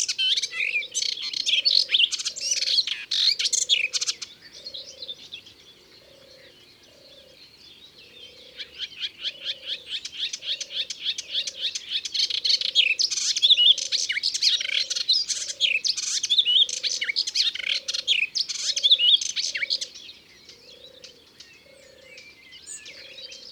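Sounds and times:
melodious warbler song: 0:00.0 - 0:23.5.

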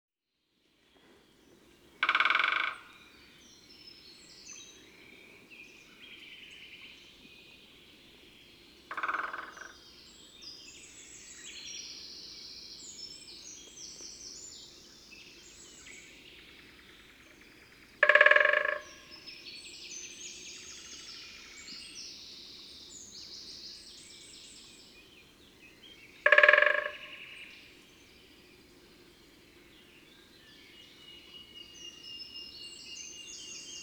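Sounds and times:
great spotted woodpecker drumming: 0:02.0 - 0:02.9, 0:08.9 - 0:09.7, 0:18.0 - 0:19.1, 0:26.2 - 0:27.4.

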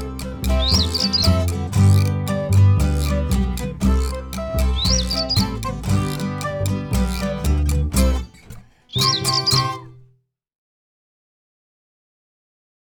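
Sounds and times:
instrumental mambo music: 0:00.0 - 0:10.0.

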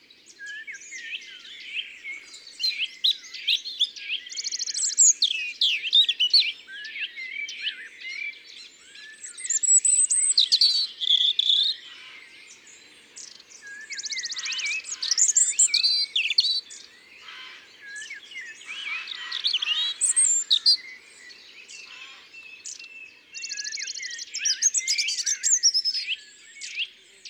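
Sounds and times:
European robin singing: 0:00.0 - 0:27.2.

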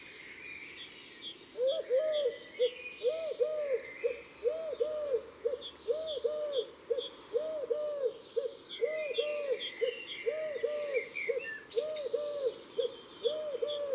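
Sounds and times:
Eurasian collared dove call: 0:01.5 - 0:13.9.

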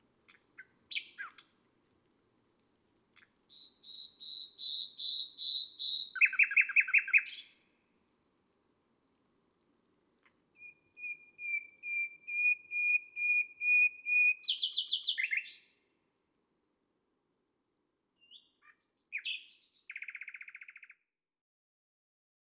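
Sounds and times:
nightingale singing on a May night: 0:00.3 - 0:01.5, 0:03.2 - 0:07.7, 0:10.5 - 0:15.8, 0:18.2 - 0:21.0.

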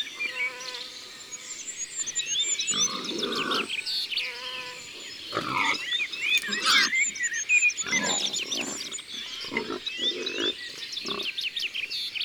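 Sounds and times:
songbirds chirping: 0:00.0 - 0:12.2
wild boar grunting: 0:02.6 - 0:11.7.

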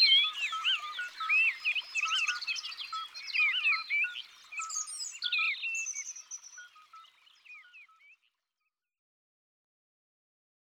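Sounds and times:
common nightingale song: 0:00.0 - 0:08.8.

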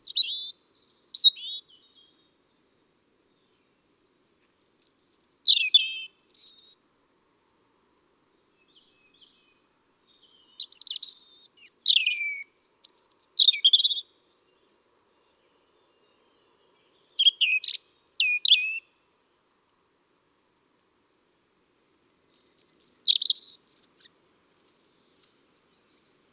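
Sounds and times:
European robin song: 0:00.0 - 0:02.2, 0:04.6 - 0:06.8, 0:08.7 - 0:14.1, 0:16.8 - 0:18.9, 0:22.1 - 0:24.4.

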